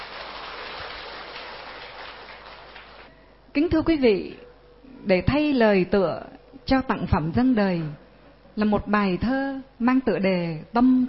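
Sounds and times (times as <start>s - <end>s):
round of applause from a crowd: 0.0s - 3.1s
speech: 3.6s - 8.0s, 8.6s - 11.0s.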